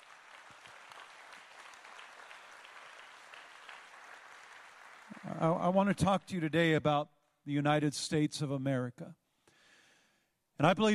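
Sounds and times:
audience applauding: 0:00.0 - 0:06.2
speech: 0:05.1 - 0:09.2, 0:10.6 - 0:10.9.

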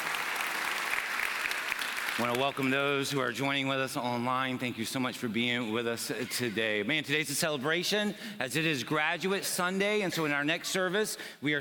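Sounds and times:
audience round of applause: 0:00.0 - 0:02.7
speech: 0:02.2 - 0:11.6.

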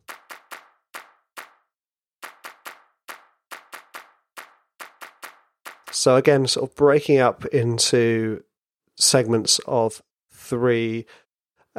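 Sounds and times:
layered hand-clap samples in a music track: 0:00.0 - 0:06.2
speech: 0:06.0 - 0:11.2.

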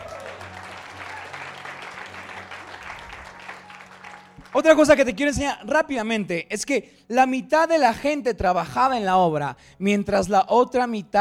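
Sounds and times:
audience applauding: 0:00.0 - 0:05.1
speech: 0:04.5 - 0:11.1.

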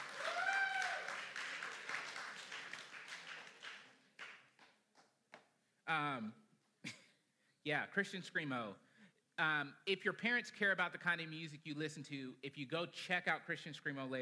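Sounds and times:
applause: 0:00.0 - 0:05.1
speech: 0:05.9 - 0:07.0, 0:07.6 - 0:14.2.

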